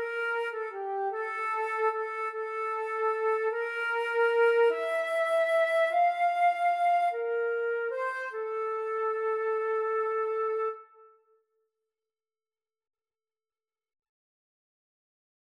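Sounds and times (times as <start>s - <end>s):
flute duet: 0.0s - 11.1s.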